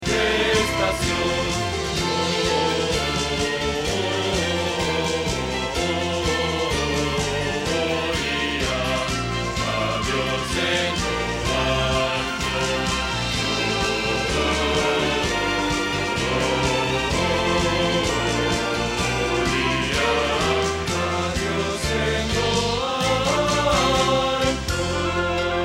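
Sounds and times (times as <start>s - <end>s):
bass: 0.0s - 25.6s.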